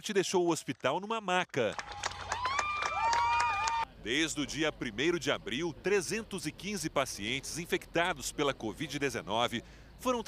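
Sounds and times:
speech: 0:00.0 - 0:02.0, 0:04.0 - 0:10.2
applause for discharged patient: 0:01.6 - 0:03.9
cheering for discharged patient: 0:01.7 - 0:03.9.

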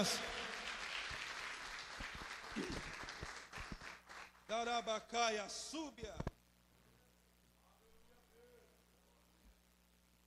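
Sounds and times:
speech: 0:00.0 - 0:00.3, 0:04.5 - 0:06.3
audience applause: 0:00.0 - 0:04.5.

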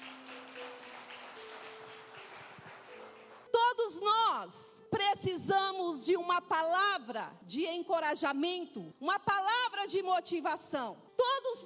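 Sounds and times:
audience applauding: 0:00.0 - 0:03.5
speech: 0:04.0 - 0:11.6.

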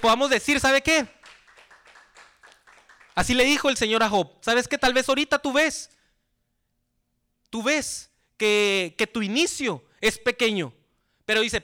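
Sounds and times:
speech: 0:00.0 - 0:01.2, 0:03.2 - 0:06.0, 0:07.5 - 0:11.6
audience clapping in rhythm: 0:00.8 - 0:03.8.

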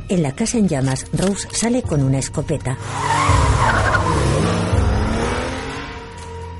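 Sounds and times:
speech: 0:00.1 - 0:03.4
tires skidding and screeching: 0:02.8 - 0:06.2
car engine roaring as the car drives off: 0:02.8 - 0:06.4.

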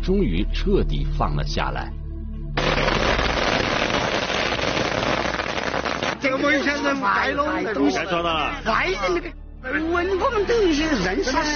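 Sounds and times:
speech: 0:00.0 - 0:02.0, 0:06.2 - 0:11.5
firecrackers set off in celebration: 0:02.6 - 0:06.7.

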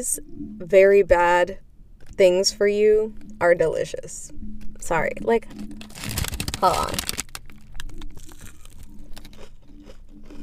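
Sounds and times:
speech: 0:00.0 - 0:05.8, 0:06.6 - 0:07.2
crunchy hash brown being bitten and chewed: 0:05.5 - 0:10.4.

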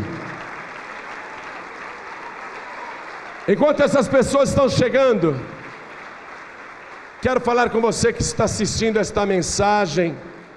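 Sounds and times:
church audience applause: 0:00.0 - 0:08.3
speech: 0:03.5 - 0:05.6, 0:07.2 - 0:10.4.

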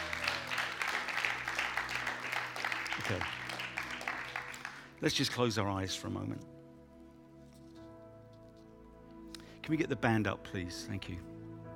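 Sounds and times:
faint applause from a church congregation: 0:00.0 - 0:05.0
speech: 0:03.0 - 0:03.4, 0:05.0 - 0:06.6, 0:09.7 - 0:11.3.

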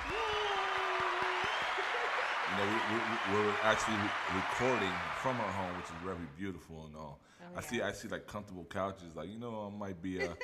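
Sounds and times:
sustained whoop-like tone: 0:00.0 - 0:05.6
laughter: 0:00.0 - 0:06.2
round of applause: 0:00.0 - 0:06.4
speech: 0:02.5 - 0:10.4.

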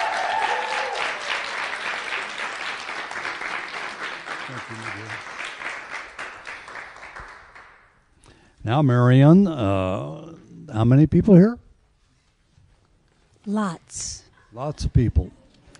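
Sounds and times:
audience applause: 0:00.0 - 0:07.8
speech: 0:04.5 - 0:05.3, 0:08.6 - 0:11.6, 0:13.5 - 0:15.4.

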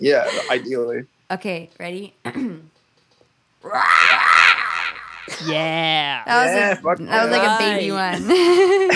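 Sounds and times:
speech: 0:00.0 - 0:02.8, 0:03.6 - 0:04.6, 0:05.3 - 0:08.9
person imitating a panther roar: 0:03.6 - 0:06.6.

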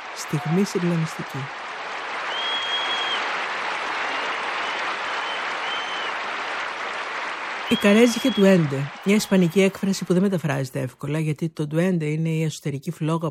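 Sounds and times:
theatre audience applause: 0:00.0 - 0:10.5
speech: 0:00.2 - 0:01.6, 0:07.7 - 0:13.2.

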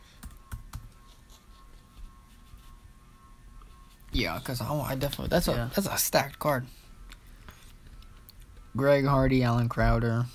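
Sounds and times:
typing on a computer keyboard looking up a website: 0:00.2 - 0:01.0
speech: 0:04.2 - 0:06.8, 0:08.8 - 0:10.3.

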